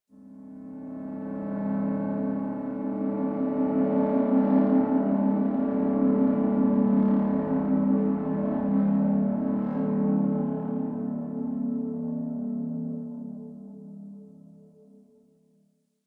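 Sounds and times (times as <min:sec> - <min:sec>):
gritty pulsing drone: 0:01.2 - 0:13.0.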